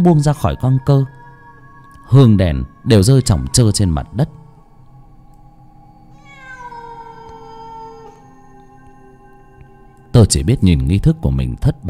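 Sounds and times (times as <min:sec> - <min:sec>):
speech: 0:00.0 - 0:01.2, 0:02.1 - 0:04.4, 0:10.2 - 0:11.8
black cat yowling: 0:02.4 - 0:04.6, 0:06.1 - 0:09.2.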